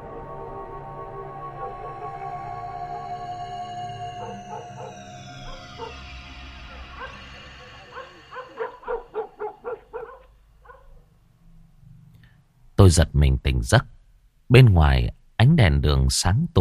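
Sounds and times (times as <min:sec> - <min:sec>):
dog barking fiercely next door: 0:04.2 - 0:06.1, 0:06.8 - 0:11.0
speech: 0:12.8 - 0:13.9, 0:14.5 - 0:16.5.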